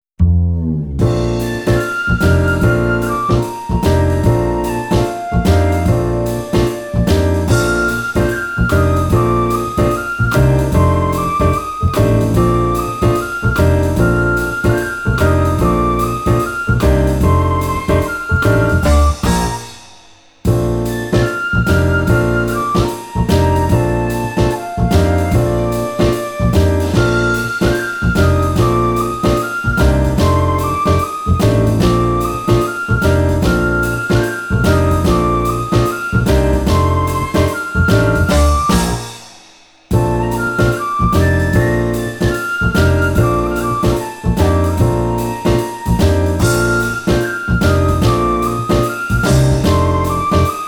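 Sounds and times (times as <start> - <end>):
instrumental music: 0.2 - 50.6.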